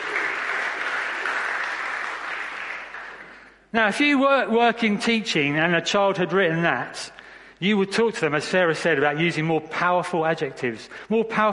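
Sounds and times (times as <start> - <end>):
audience applause: 0.0 - 3.6
speech: 3.7 - 11.5.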